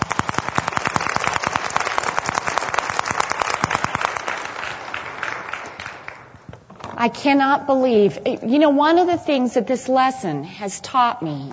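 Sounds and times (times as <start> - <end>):
crowd applause: 0.0 - 6.4
speech: 7.0 - 11.5.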